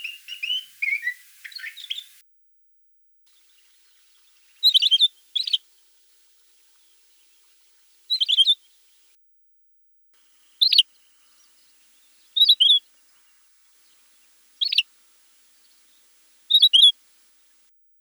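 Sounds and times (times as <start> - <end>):
pine grosbeak calling with whistled notes: 0.0 - 2.2, 3.4 - 5.7, 8.1 - 8.7, 10.5 - 17.0.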